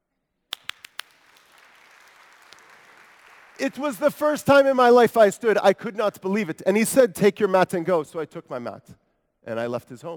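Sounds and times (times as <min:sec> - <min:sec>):
audience clapping: 0:00.5 - 0:04.5
speech: 0:03.6 - 0:10.1.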